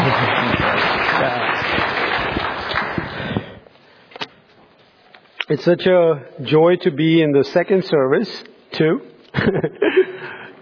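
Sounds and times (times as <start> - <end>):
audience applause: 0.0 - 3.6
speech: 5.5 - 10.4.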